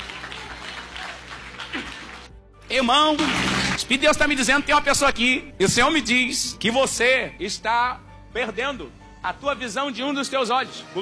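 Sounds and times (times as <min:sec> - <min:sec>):
church congregation clapping for Jesus: 0:00.0 - 0:02.4, 0:03.0 - 0:04.1
speech: 0:02.7 - 0:11.0.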